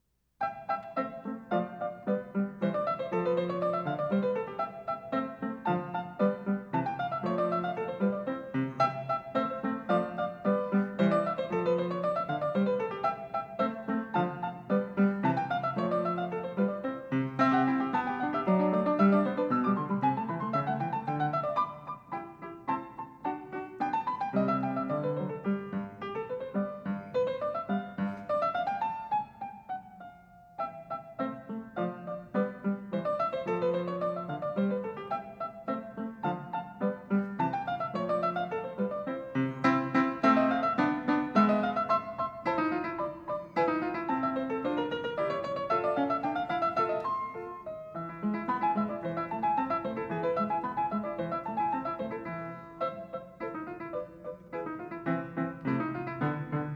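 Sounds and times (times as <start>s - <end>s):
piano sonata rondo: 0.0s - 56.7s.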